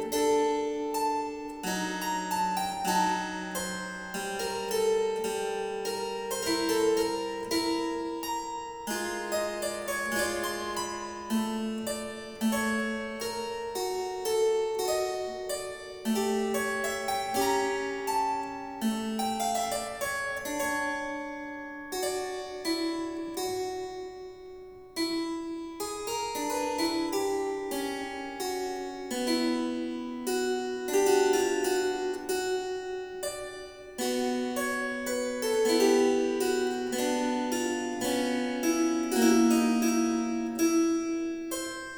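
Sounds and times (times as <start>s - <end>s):
harpsichord: 0.0s - 23.7s, 25.4s - 41.9s.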